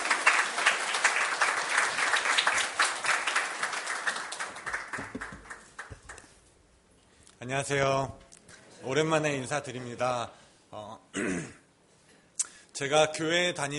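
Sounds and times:
audience applause: 0.0s - 6.3s
speech: 7.5s - 8.2s, 8.8s - 11.6s, 12.8s - 13.7s.

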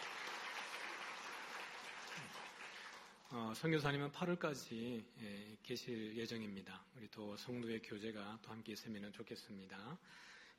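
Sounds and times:
audience applause: 0.0s - 3.3s
speech: 3.3s - 10.5s.

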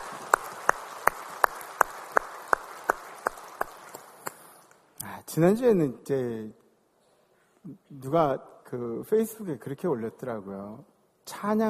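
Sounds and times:
audience applause: 0.0s - 4.6s
speech: 5.2s - 6.6s, 7.7s - 11.6s.

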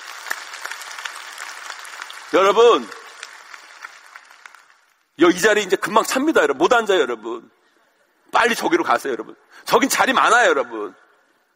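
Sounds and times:
audience applause for a church choir: 0.0s - 5.0s
speech: 2.3s - 3.0s, 5.2s - 7.6s, 8.3s - 11.0s.

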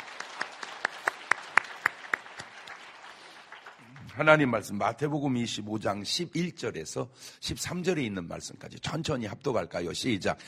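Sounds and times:
audience applause: 0.0s - 4.6s
speech: 4.2s - 10.4s.

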